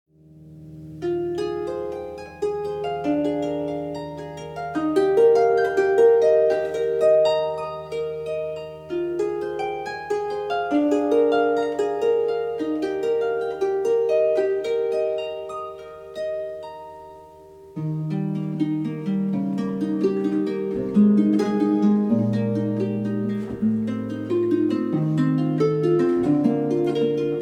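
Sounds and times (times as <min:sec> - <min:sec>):
harp nocturne: 0:00.1 - 0:27.3.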